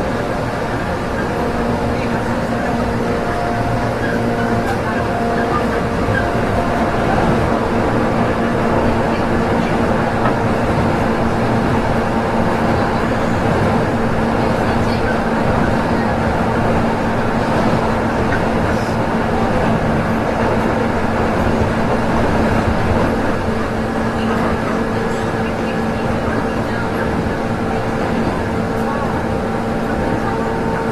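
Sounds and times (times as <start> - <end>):
Joban rapid train series 103: 0.0 - 30.9.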